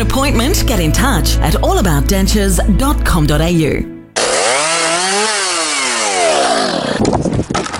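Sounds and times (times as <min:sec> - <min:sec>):
speech: 0:00.2 - 0:03.9
chainsaw engine revving and cutting into wood: 0:04.2 - 0:07.7.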